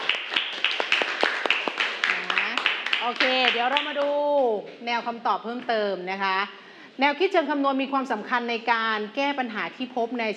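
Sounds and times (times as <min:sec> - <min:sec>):
classmates clapping for a fellow student in a classroom: 0:00.0 - 0:04.5
speech: 0:03.0 - 0:10.3.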